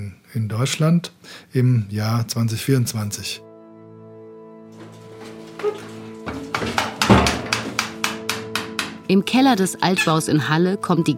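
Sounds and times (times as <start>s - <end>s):
speech: 0.3s - 3.5s, 9.1s - 11.1s
hammer and chisel chipping masonry: 4.8s - 9.1s.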